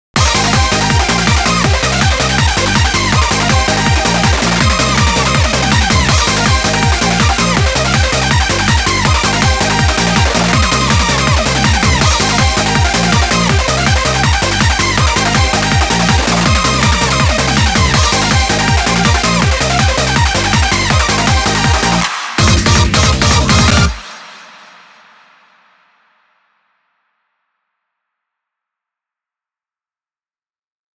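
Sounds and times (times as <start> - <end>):
eurobeat music: 0.2 - 24.0.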